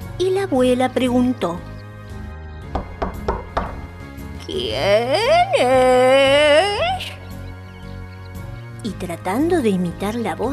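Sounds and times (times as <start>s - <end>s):
speech: 0.2s - 1.7s, 4.5s - 6.8s, 8.8s - 10.5s
knocking on a door: 2.7s - 4.0s.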